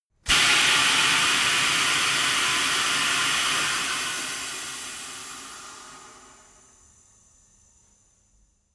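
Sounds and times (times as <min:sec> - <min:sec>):
tire changing machine hydraulics: 0:00.3 - 0:06.9.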